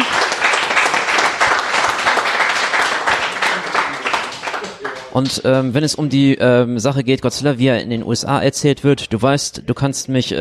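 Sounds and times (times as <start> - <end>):
crowd applauding: 0.0 - 5.6
speech: 5.2 - 10.3.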